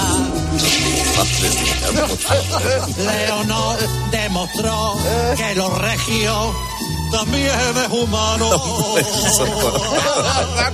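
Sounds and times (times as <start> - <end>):
toilet flushing: 0.5 - 3.6
speech: 0.6 - 10.7
laughter: 1.2 - 4.0, 7.8 - 10.7.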